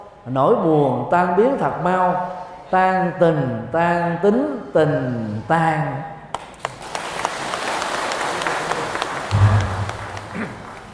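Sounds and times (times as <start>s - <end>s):
speech: 0.2s - 6.1s
audience applause: 6.6s - 10.9s.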